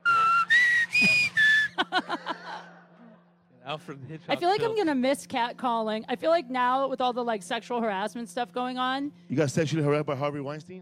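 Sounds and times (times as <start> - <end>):
whistled bird calls: 0.0 - 1.8
laughter: 0.0 - 3.3
speech: 3.7 - 10.8.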